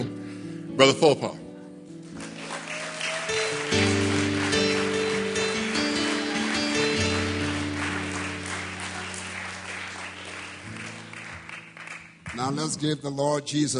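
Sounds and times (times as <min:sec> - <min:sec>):
speech: 0:00.8 - 0:01.4, 0:12.4 - 0:13.7
organ or keyboard chords: 0:02.0 - 0:13.5
audience applause: 0:02.1 - 0:12.8.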